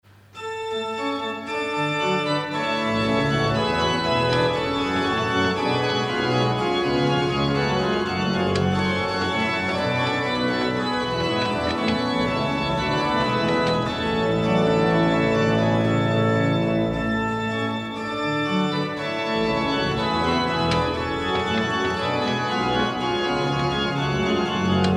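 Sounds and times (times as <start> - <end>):
organ: 0.2 - 24.9.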